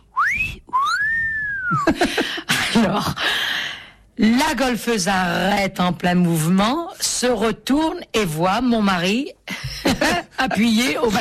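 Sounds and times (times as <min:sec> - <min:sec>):
person whistling in imitation of a myna bird's call: 0:00.2 - 0:01.9
speech: 0:01.7 - 0:03.6, 0:04.2 - 0:11.1.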